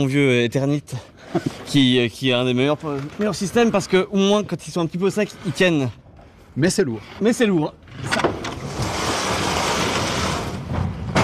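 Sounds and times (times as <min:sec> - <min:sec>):
speech: 0:00.0 - 0:06.0, 0:06.6 - 0:08.2
cultivation tables rolling on wheels: 0:02.5 - 0:05.9, 0:07.8 - 0:11.2.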